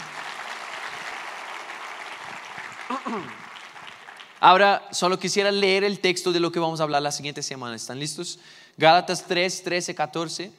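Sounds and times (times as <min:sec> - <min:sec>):
audience applauding: 0:00.0 - 0:04.6
speech: 0:03.0 - 0:03.4, 0:04.4 - 0:10.5.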